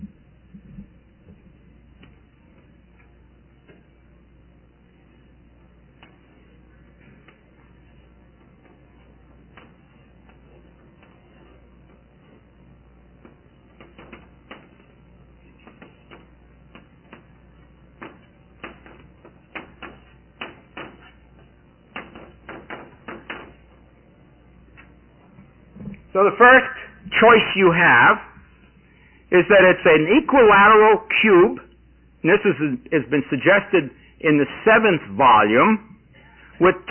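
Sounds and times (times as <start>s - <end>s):
chalk tapping and scraping on a blackboard while drawing a sketch: 6.0s - 12.5s, 13.2s - 23.6s
speech: 26.2s - 28.3s, 29.3s - 31.6s, 32.2s - 35.9s, 36.6s - 36.8s.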